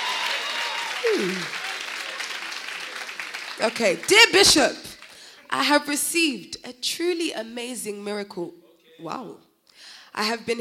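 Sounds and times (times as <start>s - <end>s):
audience clapping: 0.0s - 5.4s
person exclaiming: 1.0s - 1.5s
speech: 1.0s - 1.6s, 3.6s - 4.9s, 5.5s - 10.5s.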